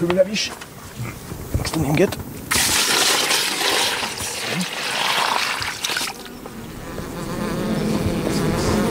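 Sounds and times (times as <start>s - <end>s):
speech: 0.0s - 2.3s
honeybees buzzing inside a well-populated hive being fed for winter: 2.9s - 8.8s.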